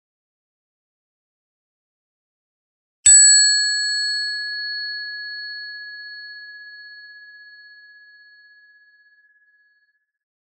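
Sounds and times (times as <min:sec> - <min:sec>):
meditation bell struck: 0:03.1 - 0:09.6.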